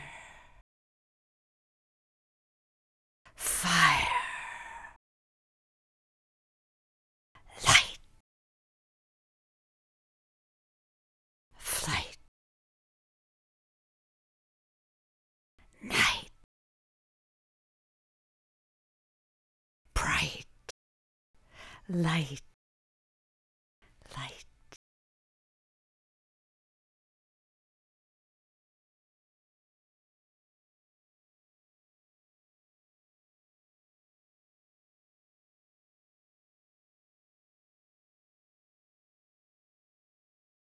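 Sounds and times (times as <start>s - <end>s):
vocal stems: 3.3s - 5.0s, 7.4s - 8.0s, 11.6s - 12.2s, 15.7s - 16.4s, 19.9s - 20.5s, 21.6s - 22.5s, 23.9s - 24.5s.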